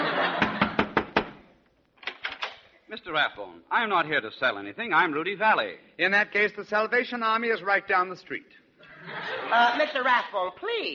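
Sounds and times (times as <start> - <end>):
laughter: 0.0 - 0.9, 8.8 - 10.0
knocking on a door: 0.4 - 1.4
speech: 2.9 - 10.9.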